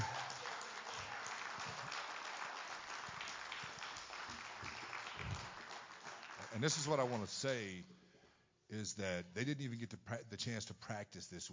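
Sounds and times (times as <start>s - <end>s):
crowd applause: 0.0s - 7.4s
speech: 6.6s - 8.0s, 8.7s - 11.5s.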